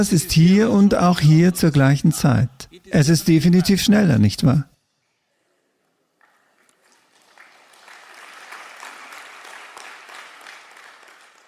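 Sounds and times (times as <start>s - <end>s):
speech: 0.0s - 4.7s
audience clapping: 6.2s - 11.4s.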